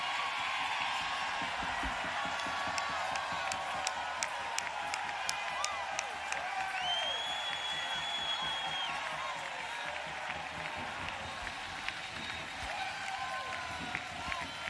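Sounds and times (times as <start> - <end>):
crowd cheering: 0.0 - 14.6.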